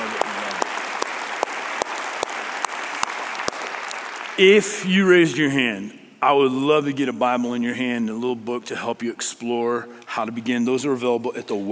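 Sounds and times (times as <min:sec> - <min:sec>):
audience applause: 0:00.0 - 0:04.4
speech: 0:04.4 - 0:11.7.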